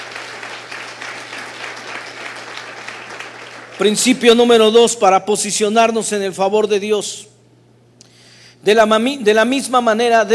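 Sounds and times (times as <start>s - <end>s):
audience applause: 0.0s - 4.3s
low constant hum: 0.0s - 10.3s
speech: 3.8s - 7.3s, 8.6s - 10.3s.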